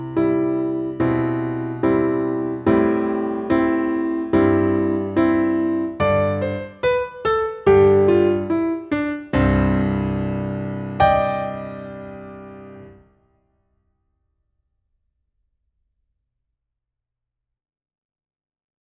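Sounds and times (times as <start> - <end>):
musical accompaniment: 0.0 - 13.0.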